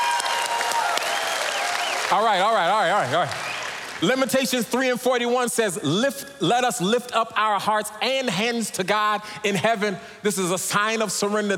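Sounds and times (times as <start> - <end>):
audience clapping hands: 0.0 - 4.5
speech: 2.1 - 11.5.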